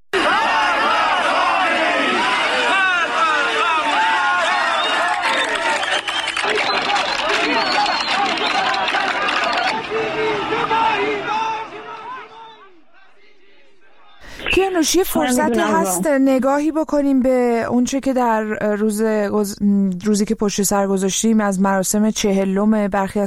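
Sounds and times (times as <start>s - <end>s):
protest crowd chanting slogans in the street: 0.2s - 16.0s
speech: 14.7s - 23.2s.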